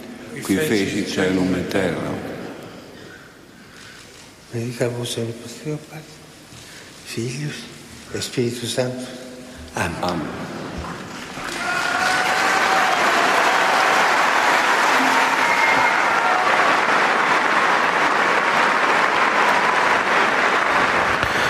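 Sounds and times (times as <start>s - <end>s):
speech: 0.4s - 2.2s, 4.5s - 6.2s, 7.1s - 9.2s, 9.8s - 10.6s
large crowd applauding: 11.2s - 21.4s
tonal sounds: 15.0s - 16.1s.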